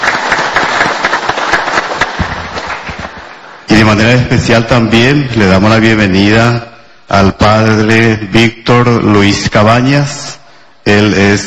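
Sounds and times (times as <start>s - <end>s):
audience applause: 0.0s - 3.7s
speech: 3.9s - 11.4s.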